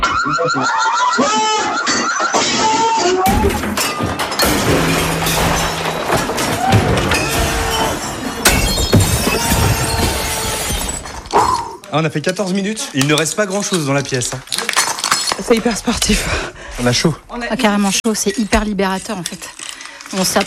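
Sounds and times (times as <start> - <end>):
loud alarm-like tone: 0.0 - 2.7
laughter: 0.0 - 3.5
speech: 0.3 - 2.4, 11.9 - 14.6, 15.4 - 20.4
dishes and objects smashed with bats: 3.2 - 11.6, 13.0 - 16.4.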